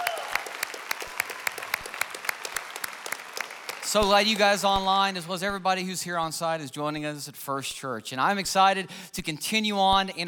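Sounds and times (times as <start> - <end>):
church congregation applauding: 0.0 - 4.9
speech: 3.9 - 10.2.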